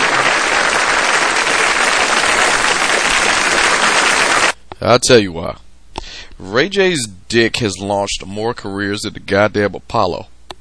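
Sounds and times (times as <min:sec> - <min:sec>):
audience applause: 0:00.0 - 0:04.6
speech: 0:04.8 - 0:05.6, 0:06.4 - 0:10.3.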